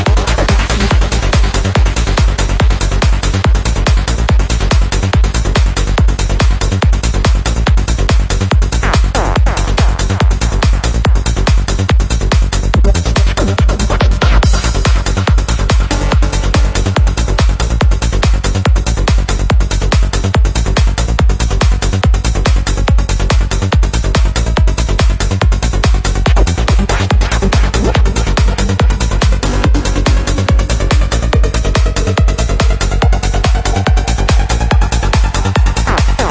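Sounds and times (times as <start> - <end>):
psy trance music: 0.0 - 36.2.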